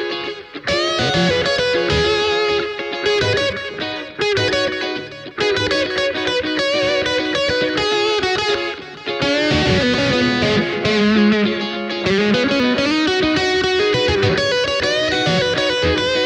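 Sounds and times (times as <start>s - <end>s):
ESP LTD MM 30 guitars: 0.0s - 16.2s.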